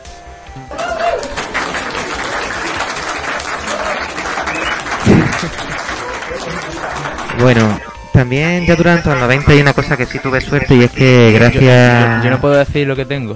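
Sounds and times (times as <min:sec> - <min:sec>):
laughter: 0:00.7 - 0:07.7, 0:08.7 - 0:12.4
audience applause: 0:00.7 - 0:07.9
speech: 0:07.4 - 0:13.3.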